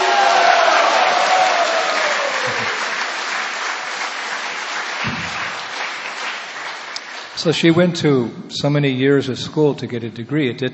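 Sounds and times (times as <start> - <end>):
audience applause: 0.0 - 7.7
speech: 7.4 - 10.7.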